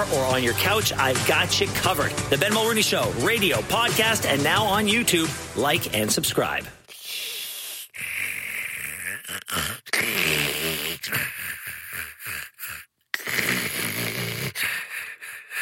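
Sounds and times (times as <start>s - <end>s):
speech: 0.0s - 6.8s
person snoring: 6.9s - 15.5s.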